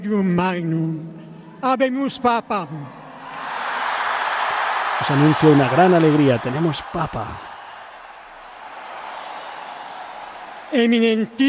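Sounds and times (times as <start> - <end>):
speech: 0.0 - 3.0, 5.0 - 7.5, 10.7 - 11.4
crowd applauding in St. Peter's Square: 3.1 - 11.4.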